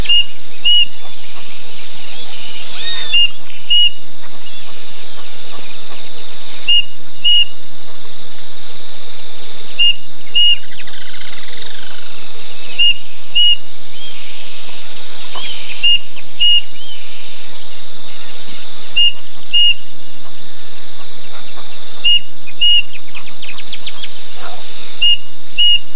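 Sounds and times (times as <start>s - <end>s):
bird two-note whistle: 0.0s - 1.0s, 2.1s - 4.0s, 6.4s - 7.6s, 9.8s - 11.0s, 12.7s - 14.1s, 15.4s - 17.0s, 19.0s - 19.8s, 22.1s - 23.0s, 24.9s - 25.9s
faint bird chirps: 0.0s - 9.0s, 9.7s - 25.9s
insect chorus buzzing: 0.0s - 25.9s.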